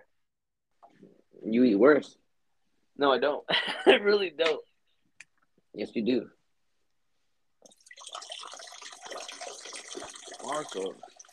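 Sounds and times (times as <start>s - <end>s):
speech: 1.3s - 2.2s, 3.0s - 4.7s, 5.8s - 6.4s, 10.5s - 11.1s
water running from a sink tap while washing hands: 7.7s - 11.3s.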